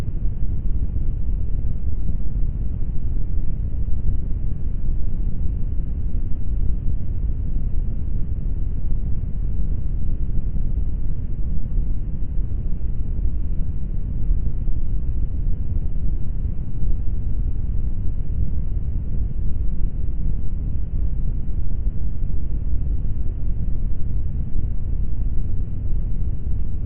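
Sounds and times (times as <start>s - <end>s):
low brown noise: 0.0s - 26.8s.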